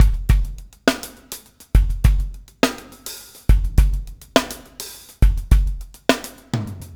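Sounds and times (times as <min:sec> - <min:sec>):
drum backbeat: 0:00.0 - 0:06.9.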